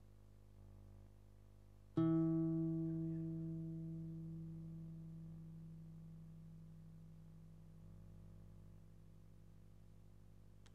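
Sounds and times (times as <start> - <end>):
guitar: 2.0 - 8.5.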